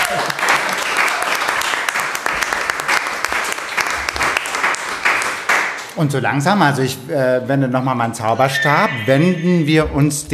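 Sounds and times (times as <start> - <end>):
audience applause: 0.0 - 5.9
speech: 6.0 - 10.3.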